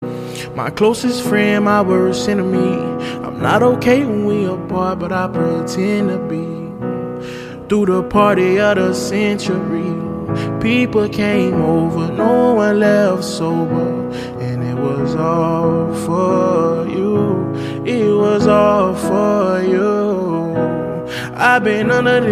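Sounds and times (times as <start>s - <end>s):
acoustic music: 0.0s - 22.3s.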